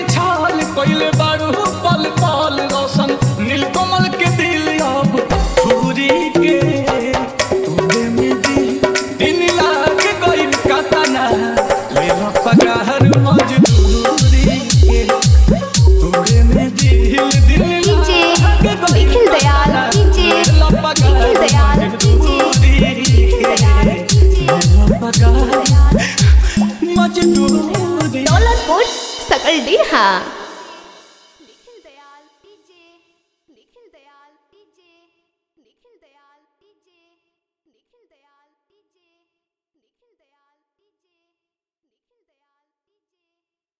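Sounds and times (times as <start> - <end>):
Bhojpuri DJ song: 0.0 - 31.2.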